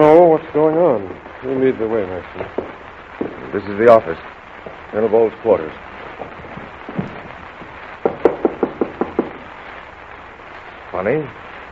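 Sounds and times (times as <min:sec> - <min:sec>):
speech: 0:00.0 - 0:02.8, 0:03.5 - 0:06.4, 0:11.0 - 0:11.4
faint soft thumps: 0:02.4 - 0:03.5, 0:06.2 - 0:09.5
knocking on a wooden door: 0:08.0 - 0:09.4.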